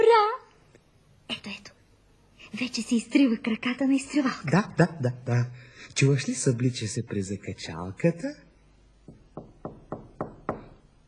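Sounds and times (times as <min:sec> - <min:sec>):
speech: 0:02.6 - 0:08.5
knocking on a door: 0:09.0 - 0:10.9.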